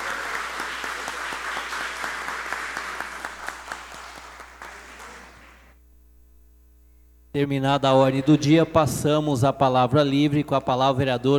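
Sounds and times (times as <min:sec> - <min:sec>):
applause for a council honoree: 0:00.0 - 0:05.7
speech: 0:07.4 - 0:11.3.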